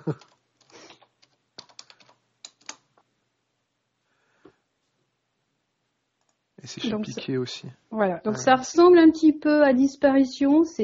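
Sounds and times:
speech: 0.0s - 0.3s, 6.7s - 10.8s
typing on a computer keyboard with one hand: 0.0s - 2.9s.

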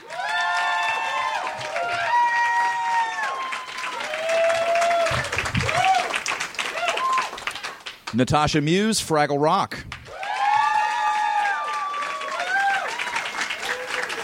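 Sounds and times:
audience applause: 0.0s - 8.2s, 10.0s - 14.2s
speech: 8.1s - 9.9s.

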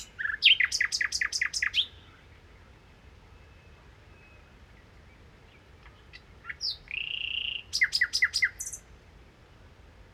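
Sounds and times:
common nightingale singing: 0.0s - 2.2s, 5.5s - 8.8s.

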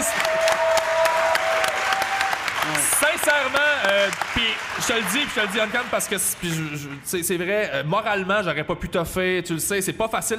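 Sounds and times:
audience applause at a live show: 0.0s - 7.3s
speech: 4.8s - 10.3s.

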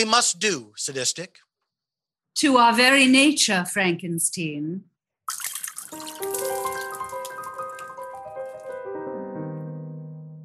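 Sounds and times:
speech: 0.0s - 1.5s, 2.4s - 6.3s
martinis being poured out: 5.3s - 8.8s.

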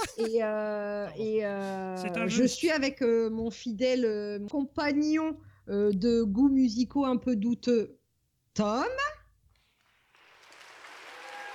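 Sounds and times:
laughter: 0.0s - 0.5s
speech: 0.1s - 8.0s, 8.6s - 9.2s
person clapping: 9.7s - 11.5s.

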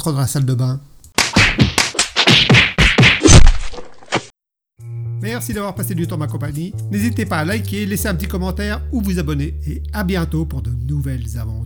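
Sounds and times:
speech: 0.0s - 0.9s, 5.2s - 11.6s
baseball bat hit sound effect, hard blunt whacks: 1.2s - 4.3s.

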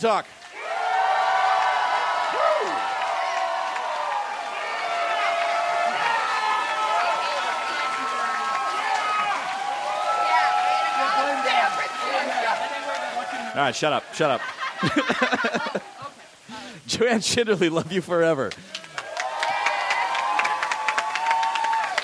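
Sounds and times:
speech: 0.0s - 0.4s, 13.6s - 16.1s, 16.9s - 18.7s
audience cheering: 0.5s - 16.1s, 18.6s - 22.0s
audience clapping: 1.0s - 13.6s, 18.4s - 22.0s
laughter: 12.2s - 16.4s.

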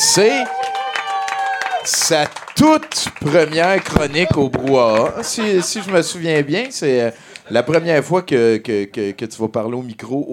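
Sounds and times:
whoops and cheering voices: 0.0s - 2.2s, 3.9s - 6.0s
audience applause: 0.1s - 6.8s
speech: 0.2s - 0.6s, 1.8s - 10.3s
laughter: 4.2s - 8.0s.

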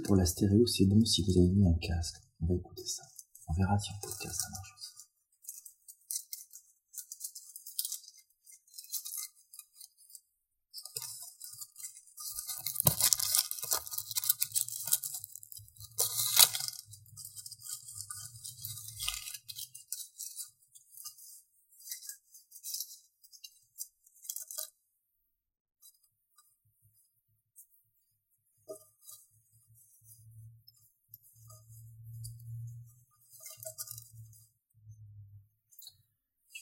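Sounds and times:
speech: 0.0s - 5.0s
dry leaves crunching: 12.3s - 20.4s.

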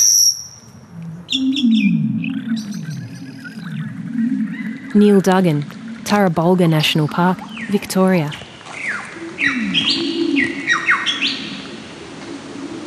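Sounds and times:
lyrebird singing: 0.7s - 12.1s
speech: 4.9s - 8.4s.

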